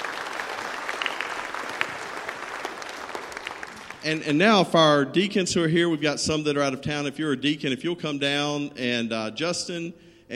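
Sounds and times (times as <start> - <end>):
audience applause: 0.0 - 4.0
speech: 4.0 - 10.3.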